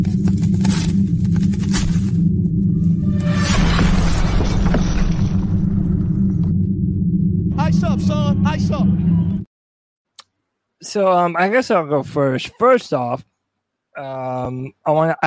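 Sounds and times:
segment bumper jingle low rumbling roar: 0.0s - 9.4s
bright crash-like shattering noise: 3.2s - 6.3s
speech: 7.8s - 9.2s, 10.8s - 13.3s, 14.0s - 15.2s.

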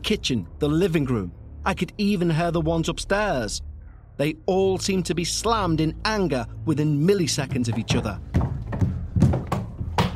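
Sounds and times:
speech: 0.1s - 8.4s
person collapsing down wooden stairs: 7.8s - 10.1s.

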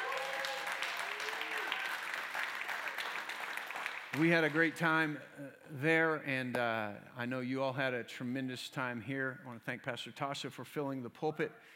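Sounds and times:
church congregation applauding the Meeker campus: 0.0s - 4.8s
speech: 4.2s - 11.7s.

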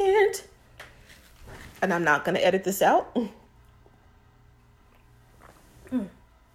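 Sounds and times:
speech: 1.8s - 3.4s, 5.9s - 6.2s
person gulping a sip of water: 4.9s - 6.5s.

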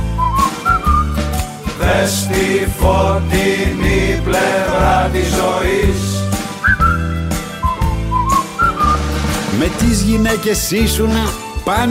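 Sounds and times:
cheerful whistled tune: 0.0s - 1.5s, 6.3s - 9.3s
instrumental accompaniment with steady beats: 0.0s - 11.8s
speech: 2.0s - 6.3s, 9.6s - 11.8s.

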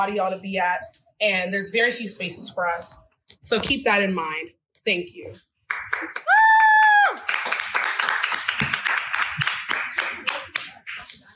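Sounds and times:
speech: 0.0s - 6.2s
audience clapping: 5.7s - 11.2s.

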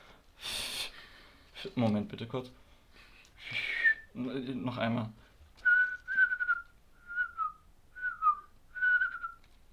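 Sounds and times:
speech: 1.6s - 2.6s, 4.2s - 5.2s
person whistling an imitation of a sparrow call: 3.5s - 4.1s, 5.6s - 9.4s.

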